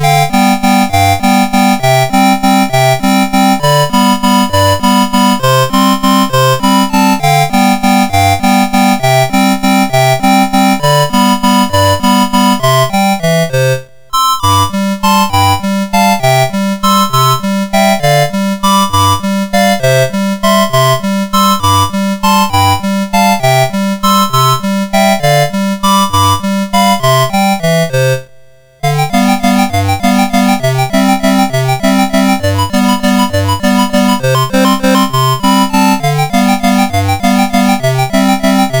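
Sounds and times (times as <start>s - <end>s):
chiptune piece on MOS6581R2: 0.0s - 38.7s.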